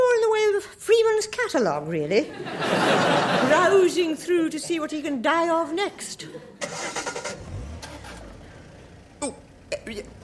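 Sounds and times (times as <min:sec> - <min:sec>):
speech: 0:01.2 - 0:07.0
laughter: 0:02.2 - 0:04.2
car engines of traffic starting to move: 0:06.2 - 0:10.2.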